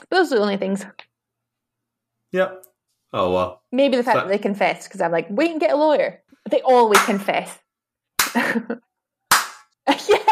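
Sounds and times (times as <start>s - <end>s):
speech: 0.0s - 1.1s, 2.3s - 7.6s, 8.3s - 8.9s
slow hand claps: 6.9s - 7.2s, 8.2s - 8.4s, 9.3s - 9.8s.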